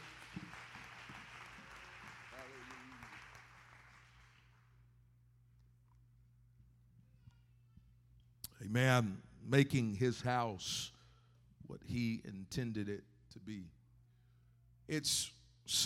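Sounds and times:
audience hand clapping applause: 0.0 - 4.8
room hum: 0.0 - 15.8
speech: 8.6 - 11.0, 11.8 - 13.8, 14.9 - 15.8.

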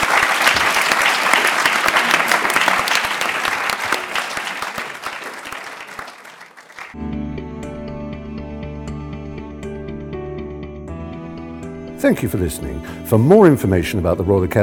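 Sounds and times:
audience applause for a panel: 0.0 - 7.0
speech: 12.0 - 14.6.

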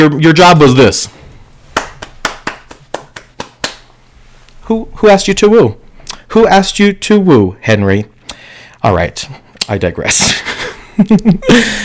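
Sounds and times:
speech: 0.0 - 1.2, 4.7 - 8.1, 8.8 - 11.8
hand claps: 1.7 - 3.9.

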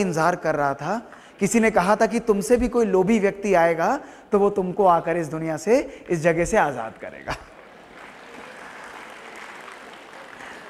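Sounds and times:
speech: 0.0 - 7.5
hand clapping: 6.7 - 10.6.

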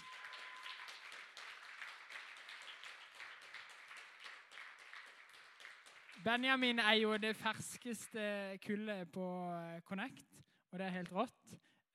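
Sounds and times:
crowd applauding: 0.0 - 6.6
speech: 6.2 - 11.6.

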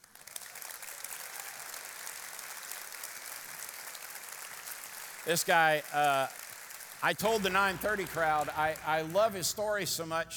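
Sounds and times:
church audience applause: 0.0 - 10.3
speech: 5.3 - 6.4, 7.0 - 10.3.

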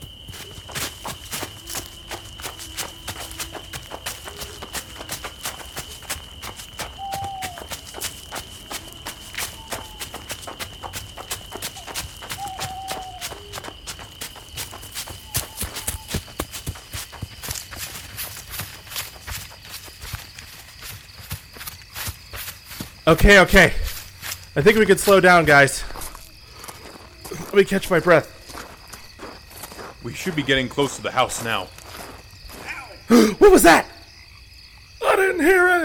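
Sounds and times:
running footsteps of people fleeing in a chase: 0.0 - 33.8
speech: 23.1 - 23.8, 24.6 - 25.9, 27.6 - 28.3, 30.0 - 31.8, 33.1 - 33.9.

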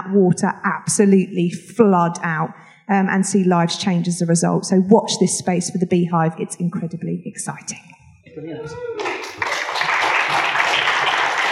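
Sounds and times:
speech: 0.1 - 9.1
audience applause: 8.7 - 11.5.

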